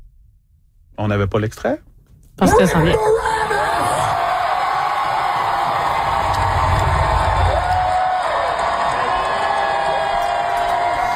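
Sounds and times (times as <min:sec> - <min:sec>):
speech: 0:01.0 - 0:03.3
whoops and shouts: 0:02.9 - 0:11.1
large crowd giving a standing ovation: 0:03.0 - 0:11.1.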